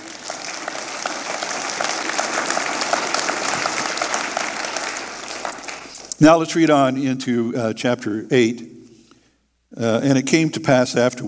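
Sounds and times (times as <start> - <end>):
audience clapping: 0.0 - 6.2
speech: 6.2 - 8.7, 9.8 - 11.2.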